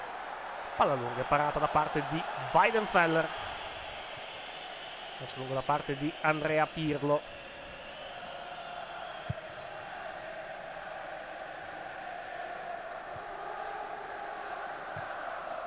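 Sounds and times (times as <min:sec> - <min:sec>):
stadium crowd chanting during a Juventus football match: 0:00.0 - 0:15.6
speech: 0:00.8 - 0:03.5, 0:05.2 - 0:07.4.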